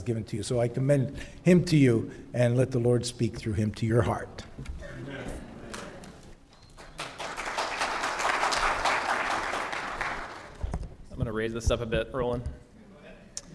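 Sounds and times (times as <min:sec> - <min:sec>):
speech: 0:00.0 - 0:05.4, 0:11.3 - 0:12.6
audience clapping: 0:05.7 - 0:10.6.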